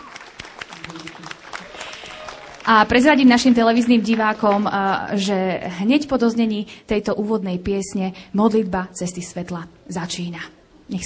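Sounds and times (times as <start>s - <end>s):
applause: 0.0s - 5.0s
speech: 2.7s - 11.0s.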